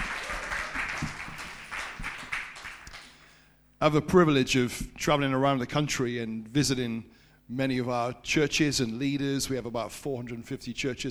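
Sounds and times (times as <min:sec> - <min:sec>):
audience cheering and applauding: 0:00.0 - 0:03.1
speech: 0:03.8 - 0:11.0.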